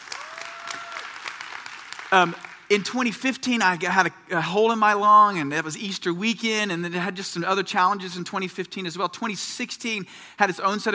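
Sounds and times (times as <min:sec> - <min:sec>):
audience clapping: 0:00.0 - 0:03.0
speech: 0:02.1 - 0:10.9.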